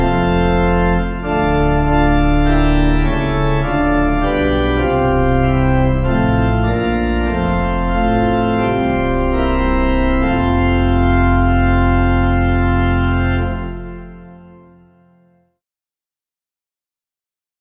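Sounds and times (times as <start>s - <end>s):
organ: 0.0s - 15.4s.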